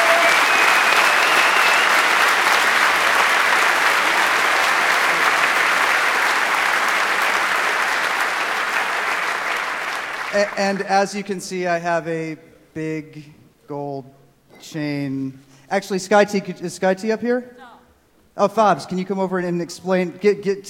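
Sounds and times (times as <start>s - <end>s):
crowd applauding: 0.0s - 11.1s
speech: 10.4s - 17.7s, 18.4s - 20.6s.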